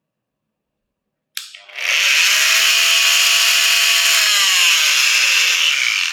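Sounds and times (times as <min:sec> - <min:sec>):
cast saw switch click: 0:01.4 - 0:01.6
oscillating cast saw cutting a plaster cast: 0:01.5 - 0:06.1.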